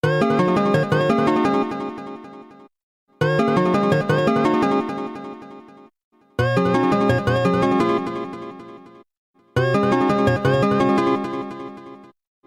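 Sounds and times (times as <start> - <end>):
ringtone: 0.0 - 2.4, 3.2 - 5.7, 6.4 - 8.9, 9.6 - 12.1.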